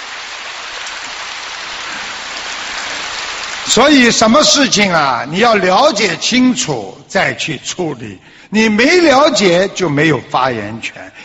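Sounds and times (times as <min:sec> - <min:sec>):
faint applause: 0:00.0 - 0:03.9
speech: 0:03.7 - 0:11.2.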